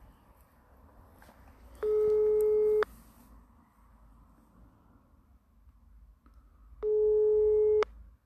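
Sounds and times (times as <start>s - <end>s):
telephone ringback tone over a speakerphone: 1.8s - 2.8s, 6.8s - 7.8s.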